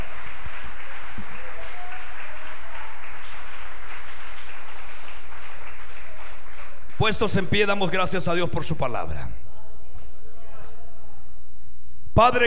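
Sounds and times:
audience applause: 0.0 - 7.4
speech: 7.0 - 9.5, 12.2 - 12.4.

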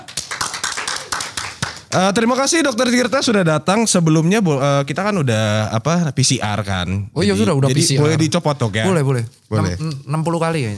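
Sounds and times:
audience clapping: 0.0 - 2.2
speech: 2.0 - 10.7.

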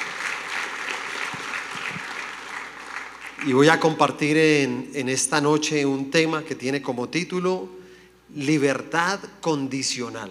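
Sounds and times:
audience applause: 0.0 - 3.7
speech: 3.4 - 10.3.

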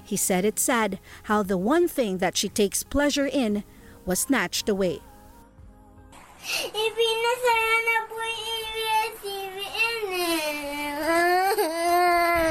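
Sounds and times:
speech: 0.1 - 5.1, 6.4 - 12.4
little children sobbing and crying as ABS-CBN goes off the air: 6.5 - 12.4.

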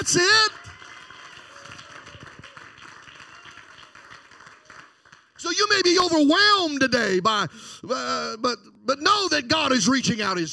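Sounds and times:
speech: 0.0 - 0.6, 5.6 - 10.5
audience clapping hands: 0.0 - 6.0.

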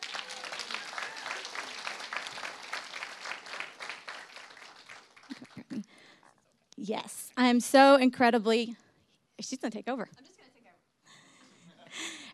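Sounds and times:
audience applause for testimony speakers: 0.0 - 6.0
speech: 6.9 - 8.8, 9.4 - 10.2.

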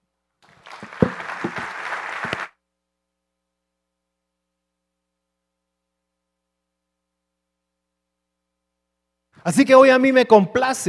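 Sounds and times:
audience applause: 0.4 - 2.6
speech: 9.4 - 10.8.

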